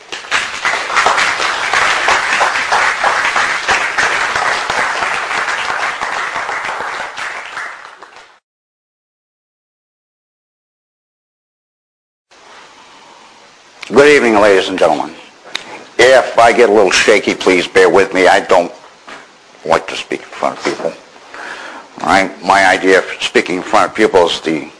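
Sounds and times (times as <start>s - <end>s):
audience round of applause: 0.0s - 8.4s
speech: 14.0s - 15.2s, 16.5s - 18.8s, 19.6s - 21.0s, 22.0s - 24.7s.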